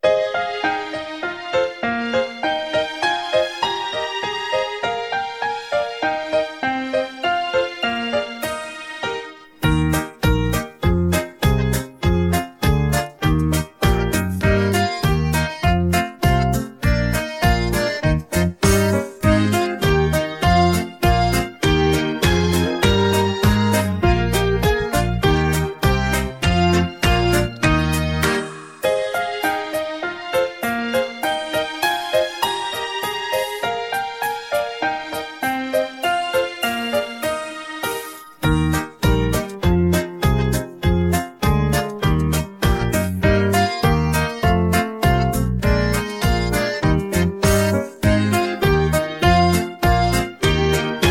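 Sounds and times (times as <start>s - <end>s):
instrumental music: 0.0s - 51.0s.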